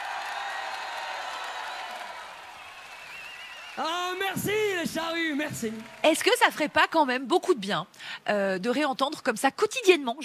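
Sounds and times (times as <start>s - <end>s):
crowd applause: 0.0s - 7.0s
speech: 3.8s - 10.2s.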